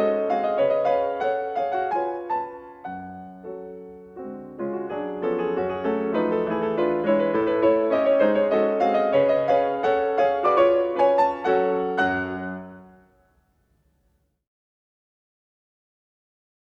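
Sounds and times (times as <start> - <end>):
mazurka in B minor on piano: 0.0 - 13.4.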